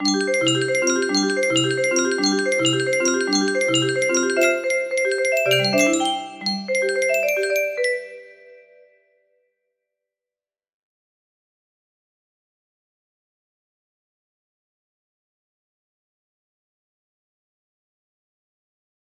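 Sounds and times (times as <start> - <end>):
music box melody: 0.0 - 8.8.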